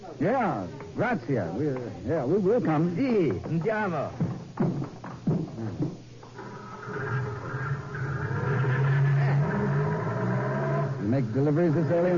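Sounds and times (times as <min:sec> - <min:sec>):
speech: 0:00.2 - 0:05.0, 0:11.2 - 0:12.1
jeep engine starting and driving: 0:06.4 - 0:12.1.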